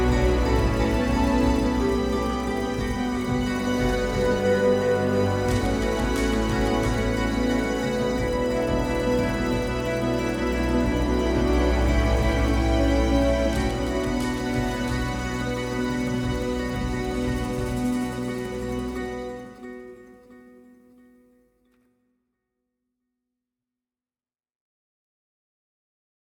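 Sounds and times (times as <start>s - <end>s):
ethnic summer music played live: 0.0s - 20.6s.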